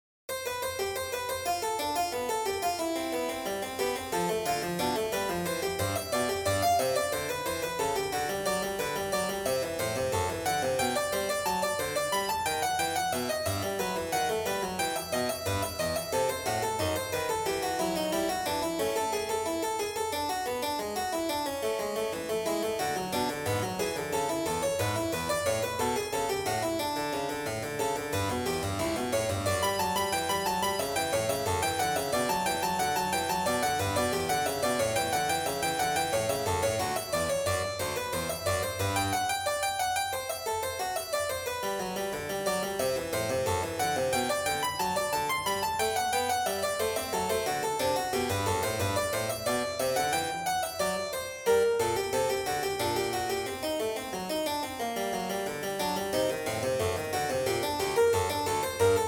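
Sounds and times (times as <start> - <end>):
two-voice keyboard piece: 0.6 - 59.0.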